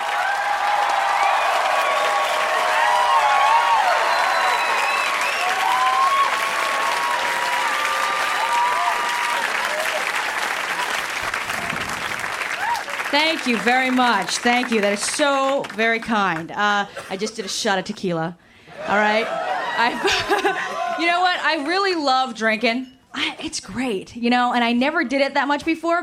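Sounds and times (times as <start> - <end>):
whoops and cheers: 0.0 - 13.0, 18.8 - 21.3
audience applause welcoming a stand-up comedian: 0.0 - 16.4, 19.0 - 21.8
speech: 13.2 - 26.0
laughter: 18.8 - 21.0.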